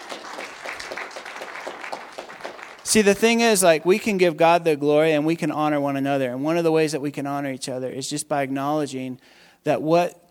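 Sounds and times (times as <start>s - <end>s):
church congregation applauding during a service: 0.0s - 3.7s
speech: 2.9s - 10.3s.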